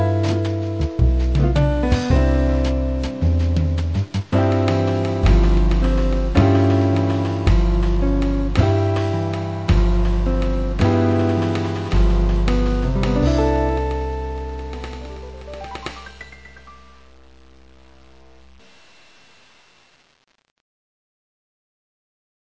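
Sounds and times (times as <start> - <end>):
jazz music: 0.0 - 17.9.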